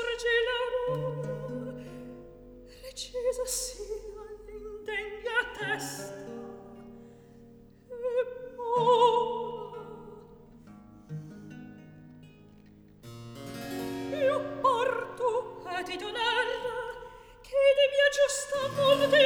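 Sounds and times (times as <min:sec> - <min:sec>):
recitative singing: 0:00.0 - 0:02.2, 0:02.8 - 0:06.8, 0:07.9 - 0:10.4, 0:14.0 - 0:19.2.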